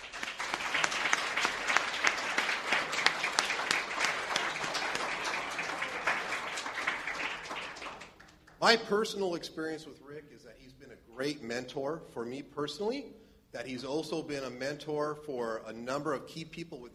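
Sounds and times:
audience applause: 0:00.0 - 0:08.6
speech: 0:08.6 - 0:16.9.

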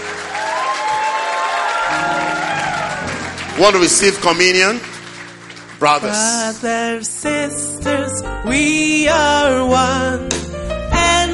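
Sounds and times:
audience applauding: 0:00.0 - 0:06.7
speech: 0:03.6 - 0:04.9, 0:05.8 - 0:10.5.

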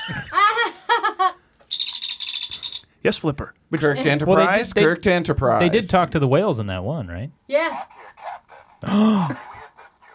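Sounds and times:
laughter: 0:00.0 - 0:01.4
Star Trek communicator toy chirping: 0:01.7 - 0:02.9
speech: 0:03.0 - 0:08.0, 0:08.8 - 0:09.5.

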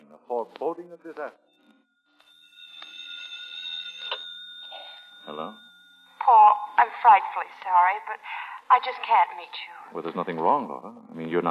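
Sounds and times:
speech: 0:00.3 - 0:01.6, 0:05.2 - 0:11.4
telephone ringing: 0:01.4 - 0:09.5.

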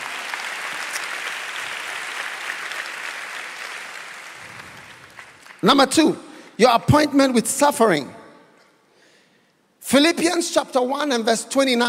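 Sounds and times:
audience clapping: 0:00.0 - 0:05.9
speech: 0:05.6 - 0:08.2, 0:09.9 - 0:11.8.

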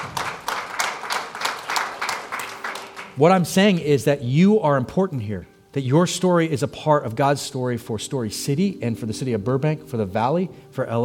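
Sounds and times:
crowd applauding: 0:00.0 - 0:03.4
speech: 0:03.2 - 0:11.0.

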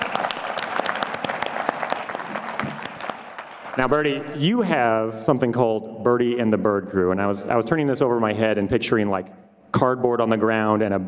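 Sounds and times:
audience applause: 0:00.0 - 0:04.2
speech: 0:03.8 - 0:11.0.

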